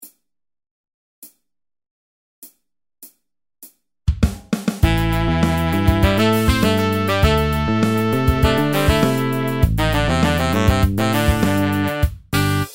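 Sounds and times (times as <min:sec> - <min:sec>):
brass: 0:04.8 - 0:12.7.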